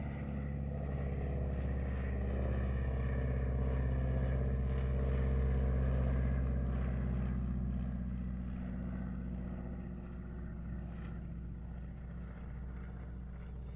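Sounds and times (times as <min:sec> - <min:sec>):
AT-6D Harvard Mk III aircraft passing distant: 0:00.0 - 0:13.7.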